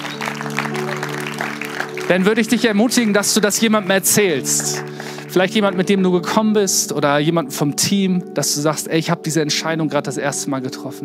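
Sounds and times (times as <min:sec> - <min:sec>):
audience applause: 0:00.0 - 0:05.9
speech: 0:02.1 - 0:11.0.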